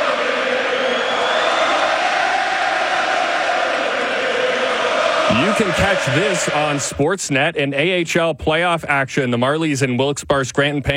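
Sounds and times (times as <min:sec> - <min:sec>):
large hockey crowd roaring and cheering: 0:00.0 - 0:07.2
speech: 0:05.6 - 0:10.9.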